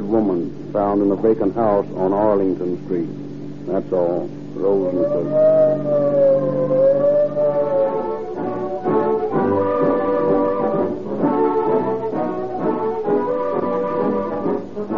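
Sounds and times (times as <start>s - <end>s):
speech: 0.1s - 7.0s
police car siren shrieking: 4.6s - 14.9s.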